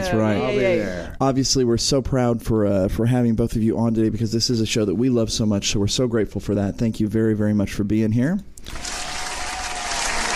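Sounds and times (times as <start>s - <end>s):
speech: 0.1s - 8.9s
audience applause: 8.7s - 10.3s.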